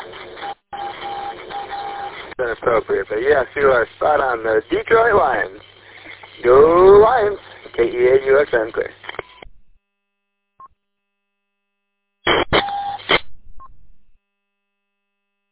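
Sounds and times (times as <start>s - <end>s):
Morse code beeps: 0.4s - 2.1s, 12.6s - 13.0s
speech: 2.4s - 5.7s, 6.4s - 9.0s.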